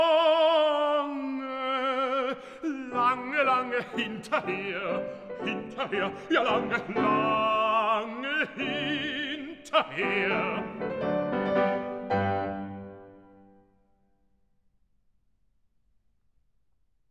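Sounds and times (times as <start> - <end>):
person singing an arietta: 0.0 - 11.2
piano: 0.0 - 13.8.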